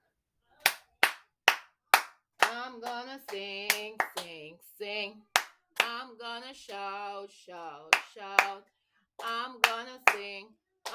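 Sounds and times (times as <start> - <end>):
people clapping hands: 0.6 - 4.4, 5.3 - 6.9, 7.6 - 10.9
speech: 2.7 - 10.9.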